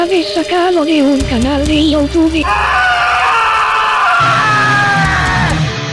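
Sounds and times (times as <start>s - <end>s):
speech: 0.0s - 2.9s
loud dense wash of distorted sound: 1.2s - 5.8s
piercing drawn-out scream in a radio section's intro jingle: 2.4s - 5.8s.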